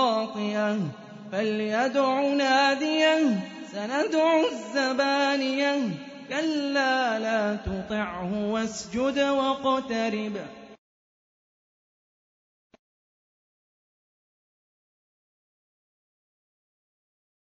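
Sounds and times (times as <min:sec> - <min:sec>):
Quran recitation: 0:00.0 - 0:10.8.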